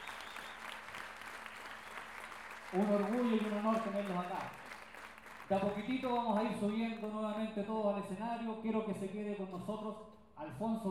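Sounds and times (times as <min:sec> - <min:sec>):
audience applause at a payadores gathering in Lo Barnechea: 0:00.0 - 0:06.8
speech: 0:02.7 - 0:04.6, 0:05.5 - 0:10.8.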